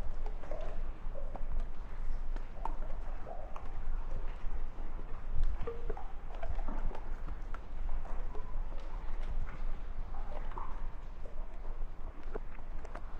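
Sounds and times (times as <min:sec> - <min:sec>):
ice cave ambience: 0:00.0 - 0:13.1.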